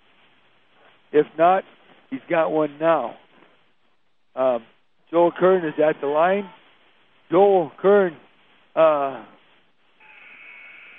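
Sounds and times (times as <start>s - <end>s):
speech: 1.1s - 3.2s, 4.4s - 6.6s, 7.3s - 8.2s, 8.8s - 9.3s
loud raspy basketball arena buzzer: 10.0s - 10.9s.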